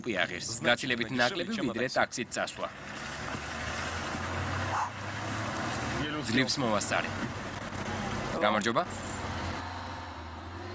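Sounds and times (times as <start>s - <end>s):
speech: 0.0s - 3.0s, 6.3s - 7.4s, 8.4s - 9.1s
bus arriving on a road in the Seychelles: 0.0s - 10.7s.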